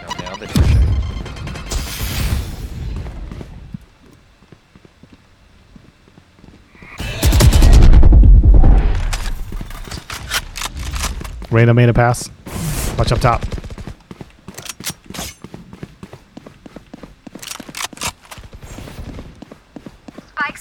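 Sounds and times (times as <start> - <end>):
grenade explosions in a video game: 0.0 - 3.7, 6.8 - 14.0
speech: 0.4 - 1.1, 11.6 - 12.4, 13.0 - 13.6
rapid gunfire in a video game: 7.0 - 9.1, 12.8 - 14.0.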